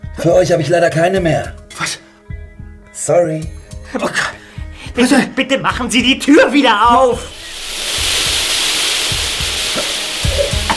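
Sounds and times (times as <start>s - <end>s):
speech: 0.2s - 1.6s, 3.0s - 4.3s, 5.0s - 7.4s
gas hissing out: 7.1s - 10.7s.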